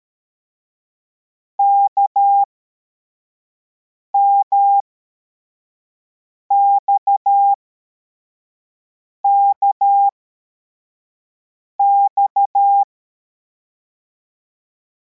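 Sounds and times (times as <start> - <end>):
CW morse code beeps: 4.2 - 4.8, 6.5 - 7.6, 9.3 - 10.1, 11.8 - 12.9.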